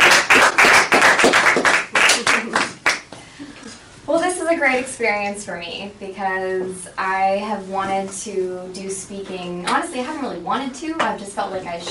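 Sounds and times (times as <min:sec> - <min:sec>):
audience applause: 0:00.0 - 0:03.1
speech: 0:04.6 - 0:11.8.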